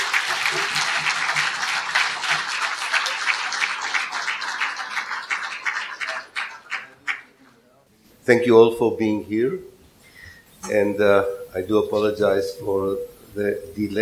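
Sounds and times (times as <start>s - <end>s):
audience applause: 0.0s - 7.6s
speech: 8.3s - 9.7s, 10.7s - 13.9s.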